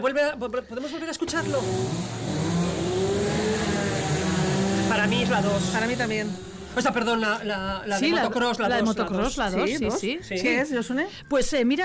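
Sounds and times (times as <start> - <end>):
speech: 0.0 - 2.6, 4.9 - 11.8
chainsaw running: 1.3 - 7.5.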